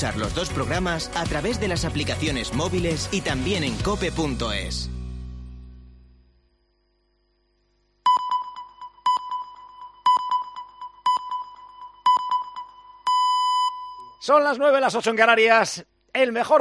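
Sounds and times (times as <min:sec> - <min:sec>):
speech: 0:00.0 - 0:05.0, 0:14.3 - 0:16.5
radio hourly time signal beeps: 0:08.1 - 0:14.2.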